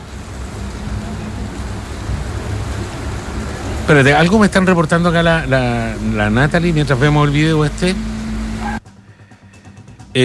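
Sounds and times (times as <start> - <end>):
heavy rain: 0.0 - 10.2
speech: 3.9 - 8.2.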